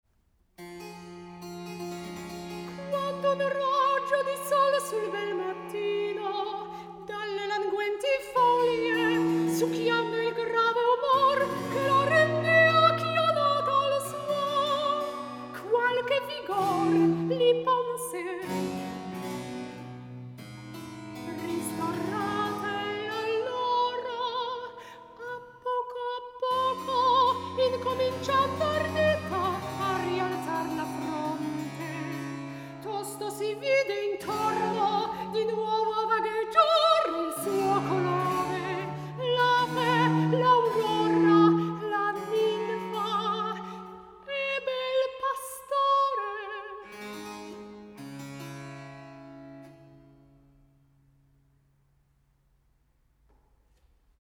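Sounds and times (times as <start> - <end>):
recitative singing: 2.7 - 18.6, 21.2 - 46.8.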